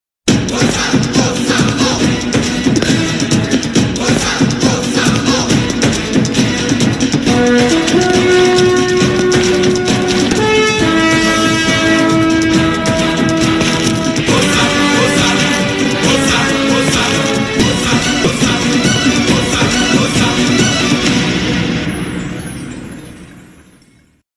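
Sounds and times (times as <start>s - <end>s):
Malayalam movie song entry intro background music: 0.3s - 23.5s.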